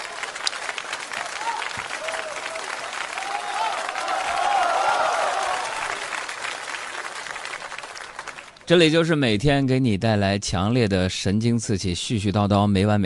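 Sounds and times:
applause: 0.0s - 8.7s
speech: 8.7s - 13.0s.

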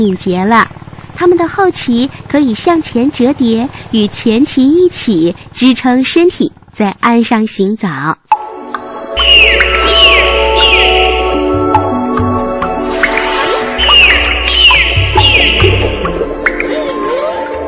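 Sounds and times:
speech: 0.0s - 8.3s
dolphin whistling calls: 9.2s - 11.8s, 13.0s - 17.6s.

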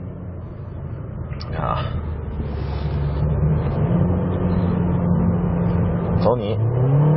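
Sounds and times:
1.8-litre SUV engine accelerating out of bend: 0.0s - 7.1s
speech: 6.3s - 7.0s.

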